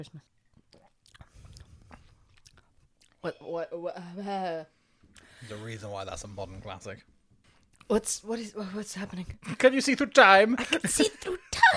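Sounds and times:
speech: 0.0 - 0.4, 3.2 - 4.8, 5.4 - 7.1, 7.9 - 11.7
soft wet chewing of a herbal-smelling Christmas food: 0.5 - 3.2.

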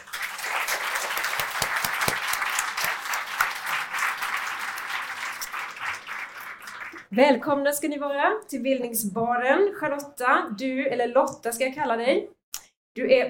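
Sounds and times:
warm audience applause: 0.0 - 7.1
speech: 7.1 - 12.4, 13.0 - 13.2.

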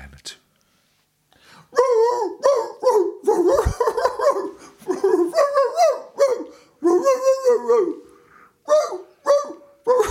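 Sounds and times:
man imitating a dog barking and howling: 1.7 - 8.0, 8.6 - 10.0.

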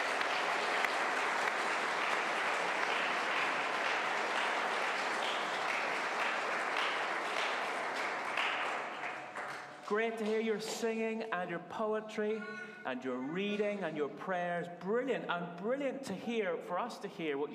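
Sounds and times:
audience applauding: 0.0 - 10.8
speech: 9.9 - 17.5.

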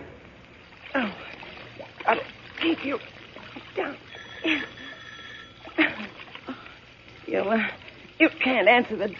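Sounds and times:
water running into a bathtub: 0.2 - 9.1
speech: 8.5 - 9.1.

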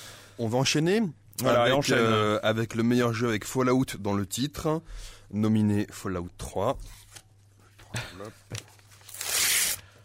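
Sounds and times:
speech: 0.4 - 7.0, 8.0 - 8.8
paper envelope being torn open: 8.8 - 9.9.

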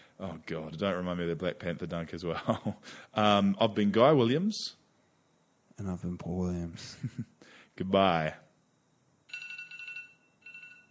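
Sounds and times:
speech: 0.2 - 4.8, 5.8 - 8.4
phone alarm ringing: 9.3 - 10.8.

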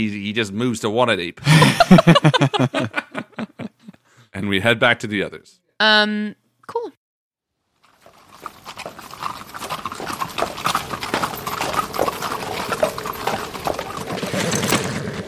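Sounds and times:
speech: 0.0 - 3.1, 4.4 - 7.0
laughter: 1.4 - 4.0
horse hooves clip-clopping on a frost-covered trail: 7.8 - 15.2.

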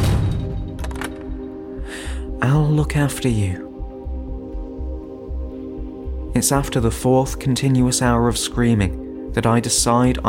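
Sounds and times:
heavy steel door slamming shut: 0.0 - 1.3
deadbolt clanking: 0.0 - 1.5
speech: 2.4 - 3.7, 6.4 - 10.2.

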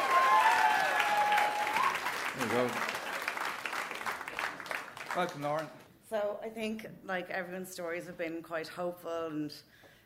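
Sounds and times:
audience applause: 0.0 - 5.7
speech: 2.4 - 3.0, 5.2 - 9.9.

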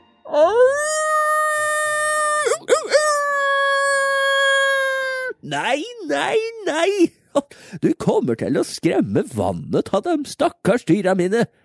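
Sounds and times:
human voice imitating a wolf howl: 0.3 - 5.4
speech: 5.5 - 11.6.

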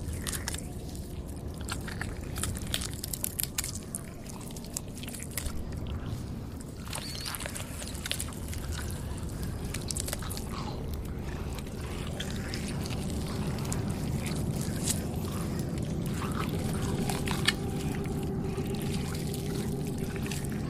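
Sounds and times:
zombie chewing and biting with wet crunching: 0.0 - 20.6
zombie low grumble: 9.2 - 20.6.

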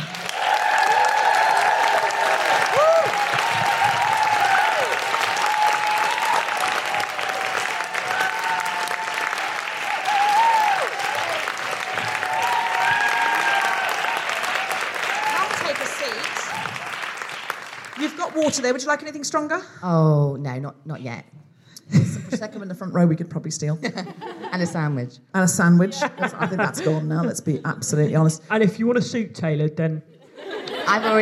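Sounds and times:
audience applause: 0.0 - 18.7
speech: 18.6 - 30.1, 30.9 - 31.2
laughter: 23.8 - 25.1, 25.8 - 27.8, 30.2 - 31.2.

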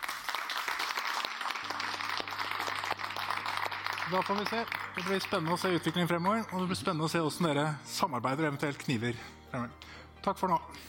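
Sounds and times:
audience applause for a panel: 0.0 - 6.6
speech: 4.1 - 10.8.

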